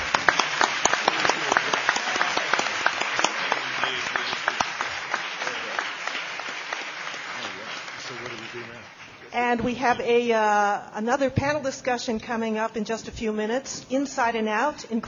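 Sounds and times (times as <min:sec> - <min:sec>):
audience applause for panelists: 0:00.0 - 0:09.3
speech: 0:09.5 - 0:15.0.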